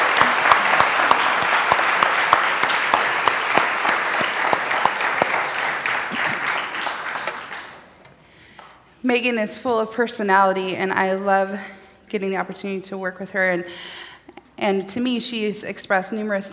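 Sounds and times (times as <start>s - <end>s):
audience applause: 0.0s - 7.9s
speech: 9.1s - 14.0s, 14.6s - 16.5s.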